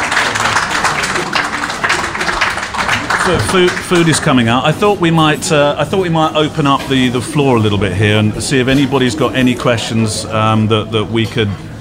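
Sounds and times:
audience round of applause: 0.0s - 4.6s
speech: 3.3s - 11.7s.

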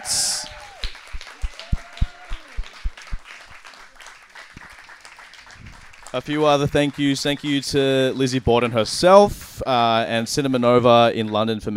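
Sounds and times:
audience applause: 0.0s - 8.9s
speech: 6.1s - 11.7s.

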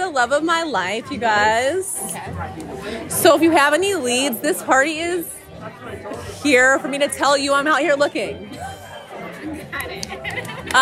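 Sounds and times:
speech: 0.1s - 8.6s
laughter: 8.4s - 10.8s
audience clapping: 9.7s - 10.8s.

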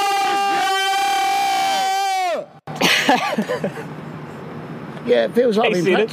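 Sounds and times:
shout with echo: 0.0s - 2.6s
speech: 3.1s - 4.1s, 5.0s - 6.1s.

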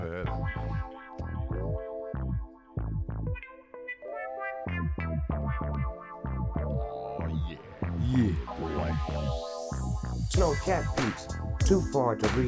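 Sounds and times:
hip-hop beat intro: 0.0s - 12.4s
speech: 8.1s - 9.5s, 10.3s - 12.4s.

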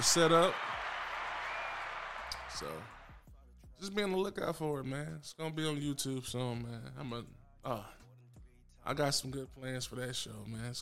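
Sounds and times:
speech: 0.0s - 0.7s, 2.6s - 3.0s, 3.8s - 8.0s, 8.8s - 10.7s
audience applauding: 0.0s - 3.2s.

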